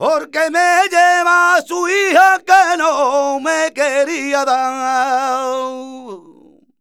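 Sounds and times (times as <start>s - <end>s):
male flamenco cantaor singing: 0.0s - 6.7s.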